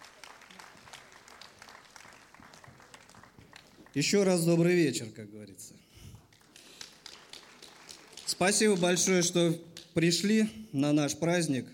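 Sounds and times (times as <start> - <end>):
enthusiastic audience applause: 0.0 - 4.5, 6.2 - 10.0
speech: 3.9 - 6.0, 8.4 - 11.7.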